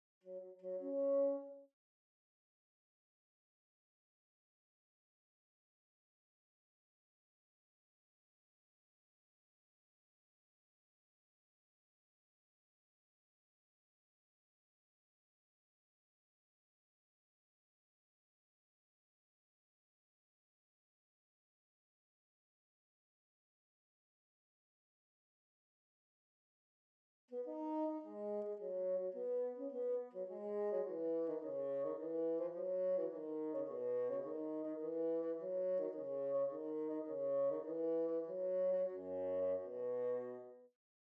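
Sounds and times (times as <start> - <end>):
bassoon: 0.3 - 1.7, 27.3 - 40.7.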